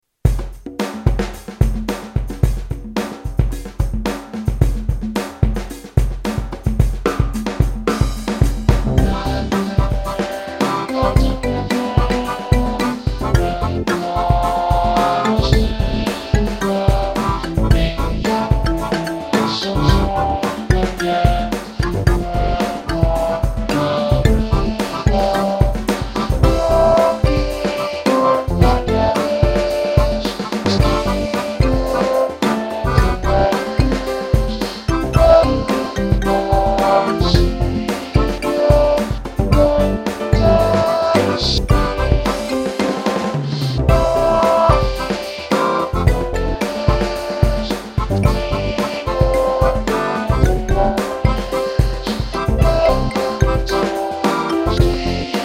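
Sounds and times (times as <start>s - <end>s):
funky remix music: 0.3s - 55.4s.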